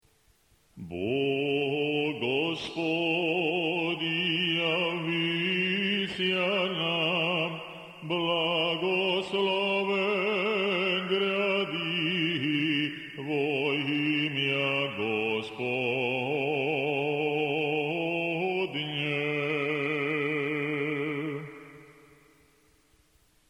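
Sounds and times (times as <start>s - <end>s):
Osmoglasnik liturgical chant in tone seven: 0.8s - 22.3s.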